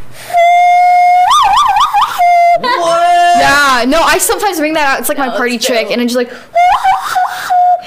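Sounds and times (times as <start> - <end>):
person whistling with the hands: 0.2 - 2.6, 6.6 - 7.8
speech: 3.8 - 6.6.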